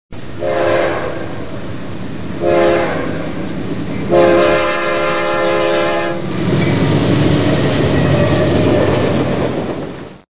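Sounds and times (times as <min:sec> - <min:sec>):
train: 0:00.1 - 0:10.3.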